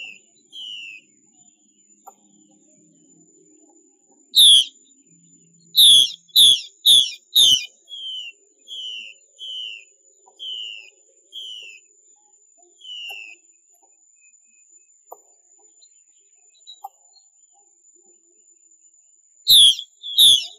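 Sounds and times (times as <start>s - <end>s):
Chinese hwamei ringing whistles: 0.0s - 1.0s, 4.4s - 4.8s, 5.8s - 11.8s, 12.8s - 13.4s, 19.5s - 20.5s
thin steady high tone: 0.0s - 15.0s, 19.5s - 20.5s.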